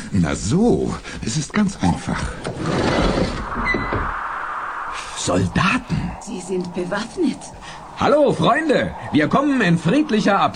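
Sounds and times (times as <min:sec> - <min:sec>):
speech: 0:00.1 - 0:03.7, 0:05.2 - 0:10.5
bulkhead door opening in Flash Gordon science-fiction audio drama: 0:02.4 - 0:05.6
high whine: 0:03.3 - 0:10.5.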